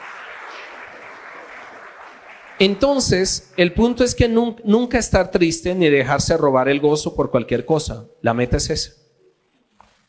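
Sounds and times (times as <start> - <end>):
church audience applauding: 0.0 - 4.0
speech: 2.6 - 9.0.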